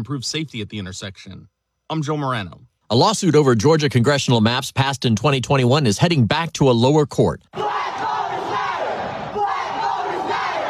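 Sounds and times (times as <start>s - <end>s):
speech: 0.0s - 7.8s
protesters chanting: 7.6s - 10.6s.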